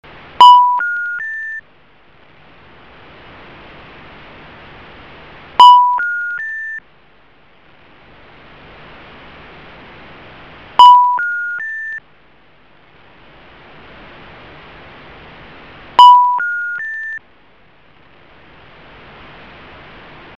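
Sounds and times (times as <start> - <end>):
telephone: 0.4 - 1.6, 5.6 - 6.8, 10.8 - 12.0, 16.0 - 17.2.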